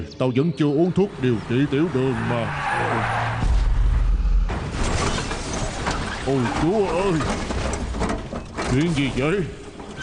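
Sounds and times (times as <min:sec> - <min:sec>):
speech: 0:00.0 - 0:03.4, 0:06.3 - 0:07.5, 0:08.7 - 0:09.6
boss's car skidding: 0:00.9 - 0:08.0
heavy booming thud: 0:03.4 - 0:05.1.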